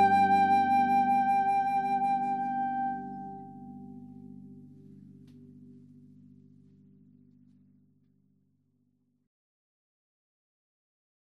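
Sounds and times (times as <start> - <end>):
violin: 0.0 - 3.4
flute: 0.0 - 3.9
harp: 0.0 - 7.5.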